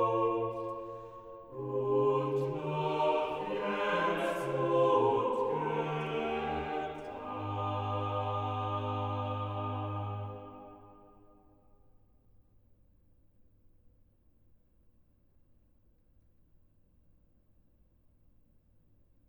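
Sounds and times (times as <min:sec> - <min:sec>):
organ chorale: 0:00.0 - 0:11.1.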